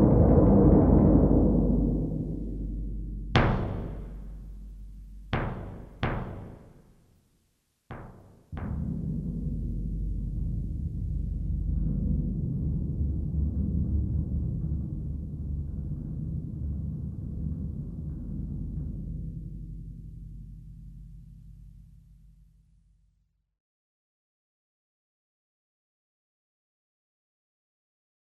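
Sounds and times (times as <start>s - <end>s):
bass drum: 0.0s - 6.9s, 7.9s - 16.1s.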